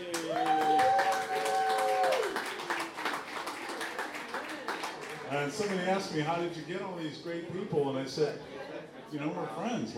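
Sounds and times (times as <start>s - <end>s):
audience applause: 0.0s - 5.8s
sustained high whistle or cheer: 0.3s - 2.4s
speech: 5.4s - 9.9s.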